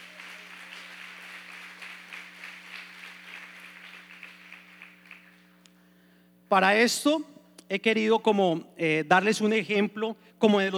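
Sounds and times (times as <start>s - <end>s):
audience applause: 0.0s - 5.7s
low electrical hum: 0.0s - 10.7s
speech: 6.5s - 10.7s.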